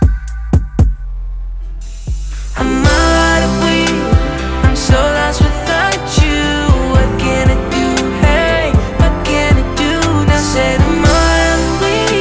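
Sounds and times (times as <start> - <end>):
man singing mainstream rap hooks: 2.5 - 12.2.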